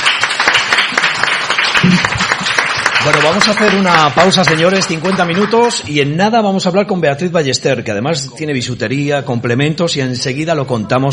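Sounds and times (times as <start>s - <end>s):
small group applauding in a radio studio: 0.0s - 5.9s
speech: 3.0s - 11.1s.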